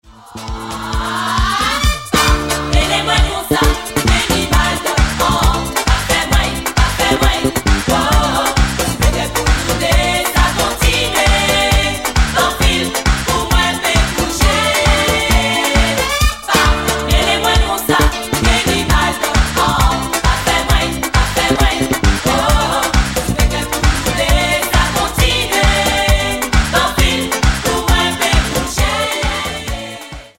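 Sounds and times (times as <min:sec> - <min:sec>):
zouk music: 0:00.1 - 0:30.3.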